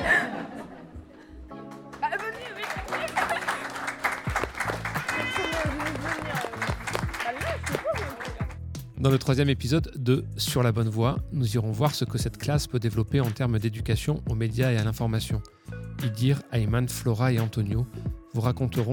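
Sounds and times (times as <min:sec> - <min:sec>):
people chuckling and laughing: 0:00.0 - 0:01.5, 0:02.6 - 0:08.4
audience applause: 0:01.8 - 0:08.6
speech: 0:09.0 - 0:18.9.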